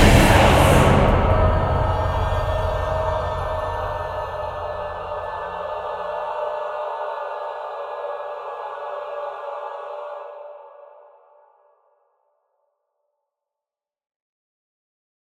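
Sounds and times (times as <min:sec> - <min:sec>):
choir singing: 0:00.0 - 0:11.7.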